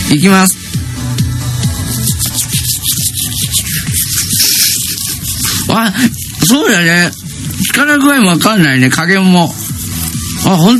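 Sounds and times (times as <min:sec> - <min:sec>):
speech: 0:00.1 - 0:00.6, 0:05.8 - 0:09.6, 0:10.4 - 0:10.7
toothbrush scrubbing teeth with toothpaste, worked with the left hand: 0:01.6 - 0:07.8, 0:08.9 - 0:10.7.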